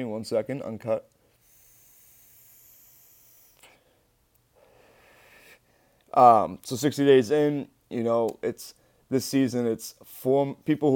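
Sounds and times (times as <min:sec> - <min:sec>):
speech: 0:00.0 - 0:01.2, 0:06.2 - 0:10.9
e-cigarette drawn on with low battery, airy hissing: 0:01.4 - 0:03.8.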